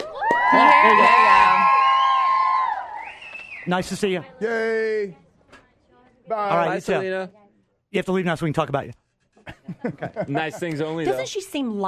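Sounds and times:
audience cheering for a singer with squeals and whoops: 0.0 - 3.7
speech: 0.5 - 1.3, 3.6 - 5.2, 6.3 - 9.0, 9.7 - 11.8
laughter: 9.3 - 11.3.

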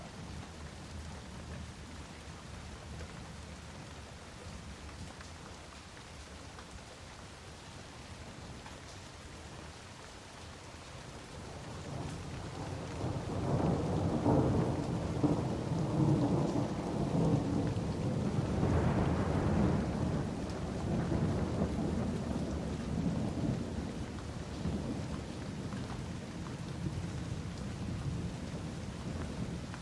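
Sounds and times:
thunderstorm in Boxted Hertfordshire: 11.8 - 29.7.

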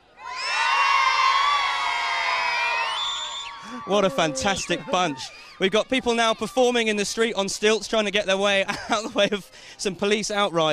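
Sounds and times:
crowd cheering: 0.2 - 6.7
speech: 3.8 - 10.7.

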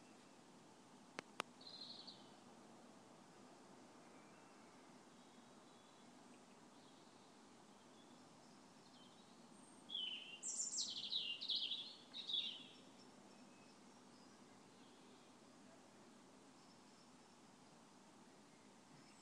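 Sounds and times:
equinox birdsong outside a window: 1.4 - 2.4, 4.0 - 15.4.

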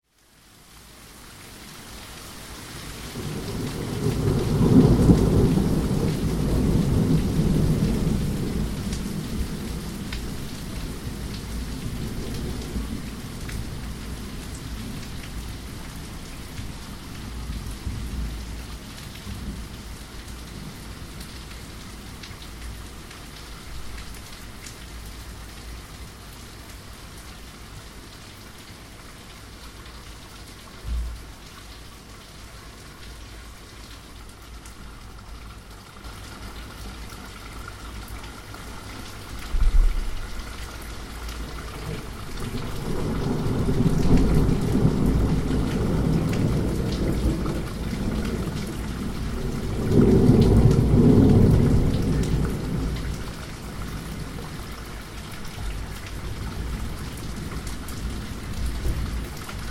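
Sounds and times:
thunderstorm: 3.1 - 15.2, 39.4 - 40.6, 41.5 - 54.6, 55.6 - 59.6.

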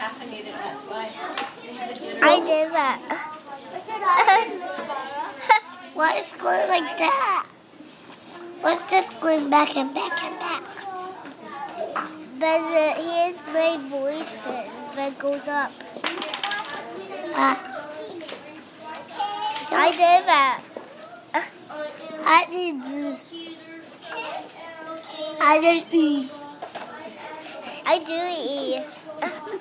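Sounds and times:
children making noise: 0.0 - 29.5.

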